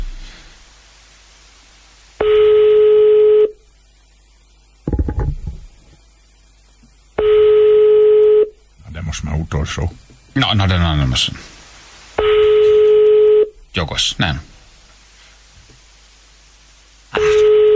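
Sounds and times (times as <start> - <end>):
telephone line tones as a call is placed to a listener: 2.2 - 3.6, 7.2 - 8.6, 12.2 - 13.5, 17.2 - 17.7
speech: 9.2 - 11.6, 13.8 - 14.5.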